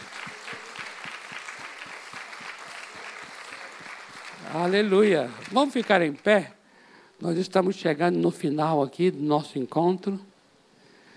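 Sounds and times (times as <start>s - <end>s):
audience applauding: 0.0s - 6.5s
speech: 4.4s - 6.6s, 7.2s - 10.3s.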